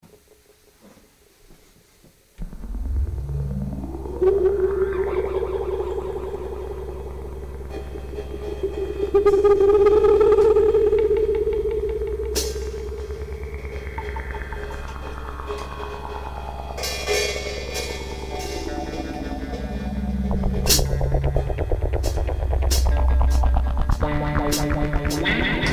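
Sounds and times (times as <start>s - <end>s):
instrumental music: 2.4s - 25.7s.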